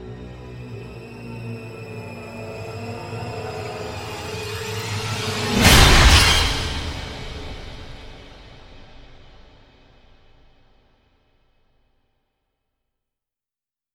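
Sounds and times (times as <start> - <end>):
horror sting: 0.6 - 9.4.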